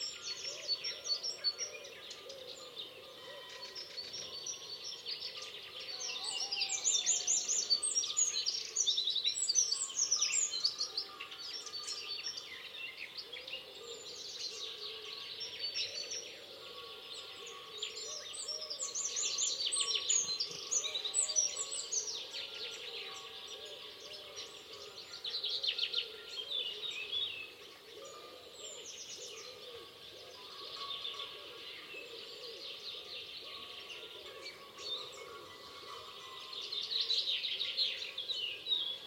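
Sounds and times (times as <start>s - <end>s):
natural animal sounds at daybreak: 0.0s - 39.0s.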